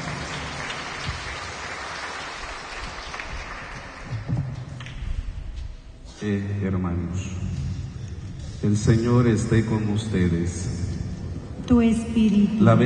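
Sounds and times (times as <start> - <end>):
congregation applause at a church service: 0.0 - 4.8
speech: 6.2 - 7.6, 8.6 - 10.8, 11.7 - 12.8.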